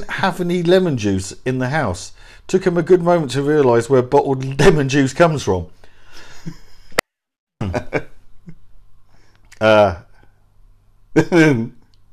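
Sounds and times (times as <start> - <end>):
speech: 0.0 - 5.8, 9.6 - 10.0, 11.2 - 11.8
person choking and coughing: 7.6 - 8.0.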